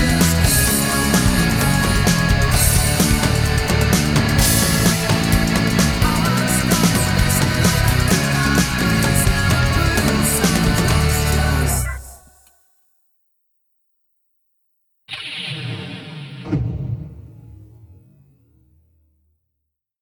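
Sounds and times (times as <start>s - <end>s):
karaoke full mix: 0.0s - 12.1s.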